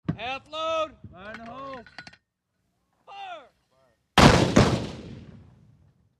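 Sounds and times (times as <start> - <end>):
81 mm mortar firing half shot outdoors: 4.2 - 5.6.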